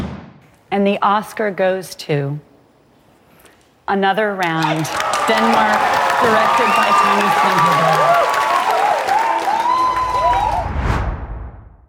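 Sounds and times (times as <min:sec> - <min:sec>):
speech: 0:00.7 - 0:02.5, 0:03.9 - 0:08.3
applause: 0:04.4 - 0:10.7
crowd cheering in live TV broadcast: 0:04.5 - 0:10.9
excited shouts and whoops: 0:04.8 - 0:10.7.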